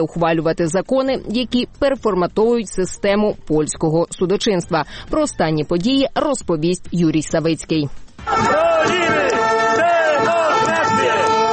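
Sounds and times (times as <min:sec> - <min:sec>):
speech: 0:00.0 - 0:09.2
protest crowd chanting slogan: 0:08.2 - 0:11.5.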